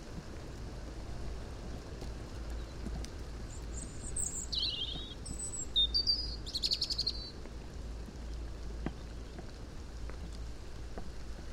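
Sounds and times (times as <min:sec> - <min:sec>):
background hiss and patter: 0:00.0 - 0:11.5
robin-like song: 0:03.8 - 0:07.3.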